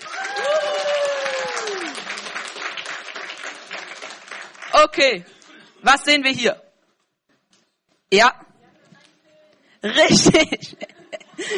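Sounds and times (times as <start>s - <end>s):
audience applause: 0.0s - 5.6s
speech: 4.9s - 6.6s, 8.1s - 8.4s, 9.8s - 11.5s
laughter: 9.9s - 11.5s.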